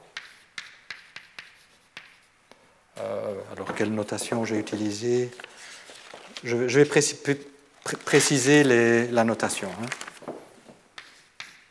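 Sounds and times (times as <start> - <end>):
writing on a board: 0.0 - 2.7, 10.9 - 11.6
speech: 3.0 - 5.5, 6.4 - 10.0.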